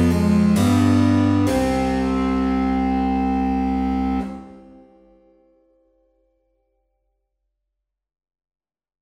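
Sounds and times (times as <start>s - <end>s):
slow minuet: 0.0s - 5.4s.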